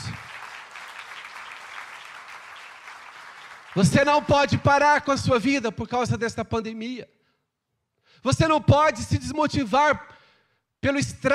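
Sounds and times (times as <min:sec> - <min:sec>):
audience applause: 0:00.0 - 0:04.3
speech: 0:03.8 - 0:07.2, 0:08.2 - 0:10.1, 0:10.8 - 0:11.3.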